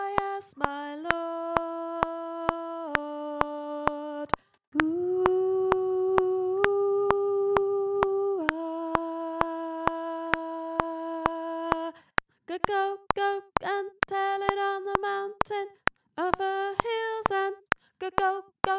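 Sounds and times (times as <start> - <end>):
soprano singing: 0.0 - 18.7.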